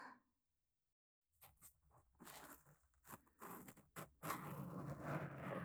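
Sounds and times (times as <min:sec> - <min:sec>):
ear cleaning sounds in the right ear: 0:02.2 - 0:05.6.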